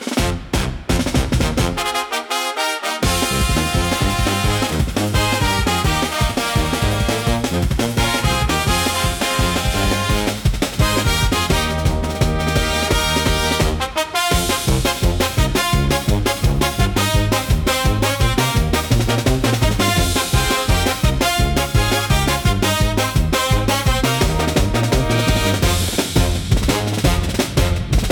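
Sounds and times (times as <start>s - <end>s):
upbeat second-line carnival music: 0.0s - 28.1s.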